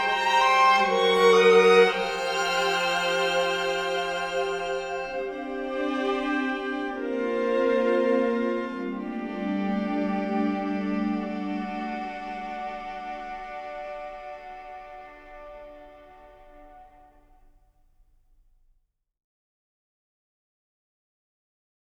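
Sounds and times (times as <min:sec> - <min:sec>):
string quartet playing: 0:00.0 - 0:17.1.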